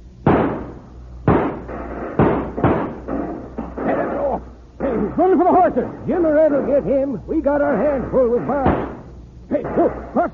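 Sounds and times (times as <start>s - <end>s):
gunfire: 0.2s - 4.2s, 8.6s - 10.2s
speech: 5.2s - 10.3s.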